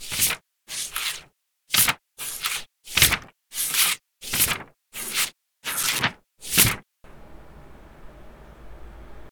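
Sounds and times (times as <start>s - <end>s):
notepad page flips: 0.0s - 6.8s.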